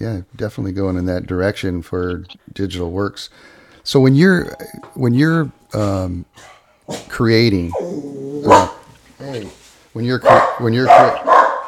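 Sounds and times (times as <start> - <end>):
speech: 0.0 - 11.6
pet dog barking indoors: 8.4 - 8.9, 10.2 - 11.6.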